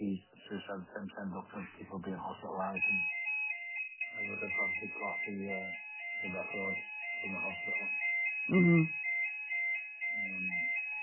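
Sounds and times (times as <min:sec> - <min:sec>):
speech: 0:00.7 - 0:03.2, 0:04.2 - 0:09.1
fire alarm going off: 0:02.8 - 0:11.0.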